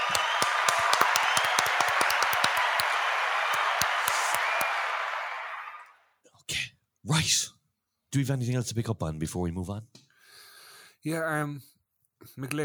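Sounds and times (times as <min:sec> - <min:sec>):
round of applause: 0:00.0 - 0:06.0
speech: 0:07.1 - 0:10.0, 0:11.0 - 0:12.6.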